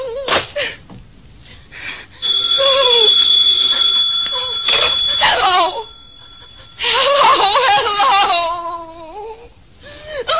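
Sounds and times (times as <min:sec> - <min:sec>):
telephone ringing: 0:02.2 - 0:08.0.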